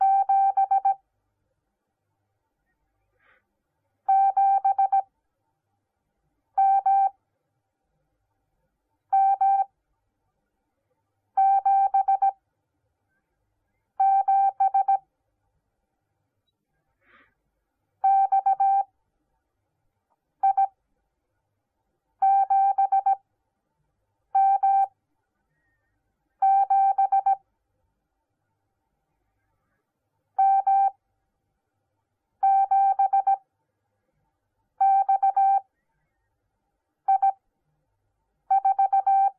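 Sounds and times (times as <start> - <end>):
morse code beeps: 0.0 - 1.0, 4.1 - 5.0, 6.6 - 7.1, 9.2 - 9.7, 11.4 - 12.4, 14.0 - 15.0, 18.0 - 18.9, 20.4 - 20.7, 22.2 - 23.2, 24.4 - 24.9, 26.4 - 27.4, 30.4 - 31.0, 32.4 - 33.4, 34.8 - 35.7, 37.1 - 37.4, 38.5 - 39.3.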